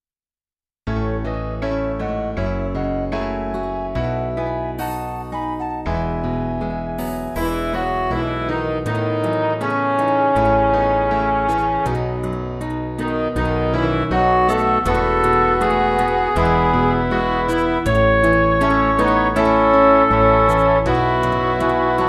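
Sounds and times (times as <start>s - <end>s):
MIDI music: 0.9s - 22.0s.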